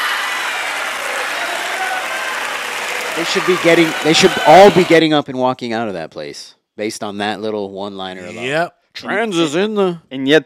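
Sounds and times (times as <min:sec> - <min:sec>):
audience applauding: 0:00.0 - 0:05.0
speech: 0:03.2 - 0:10.4.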